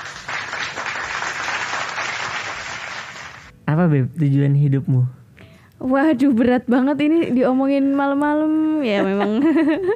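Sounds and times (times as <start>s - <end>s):
applause during a talk: 0.0s - 3.5s
speech: 3.7s - 5.2s, 5.8s - 9.9s
laughter: 8.9s - 9.9s.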